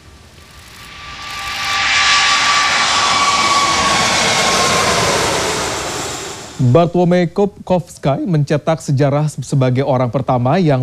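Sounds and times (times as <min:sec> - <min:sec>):
Airbus A380 jet engines roaring: 0:00.0 - 0:07.4
speech: 0:06.6 - 0:10.8.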